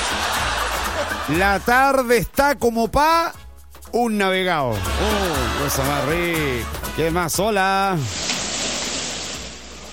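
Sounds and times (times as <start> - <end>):
laughter: 0.0 - 2.1, 4.7 - 6.6
speech: 1.3 - 8.3
heavy rain: 8.1 - 9.9.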